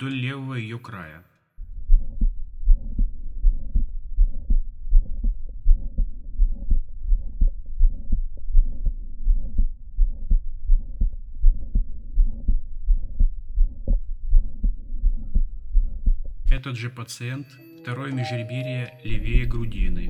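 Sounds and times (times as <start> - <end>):
speech: 0.0 - 1.3, 16.6 - 20.0
heartbeat with mitral valve prolapse through stethoscope: 1.6 - 16.6.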